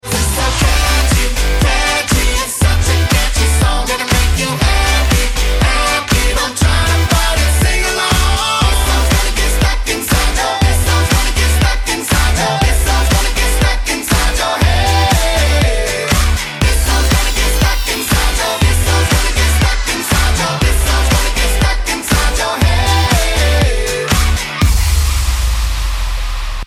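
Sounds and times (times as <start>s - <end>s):
catchy song: 0.0s - 25.5s.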